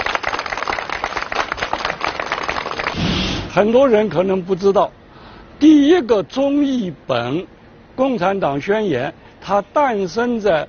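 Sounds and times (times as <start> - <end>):
audience applause: 0.0 - 3.0
speech: 3.6 - 5.0, 5.6 - 10.6.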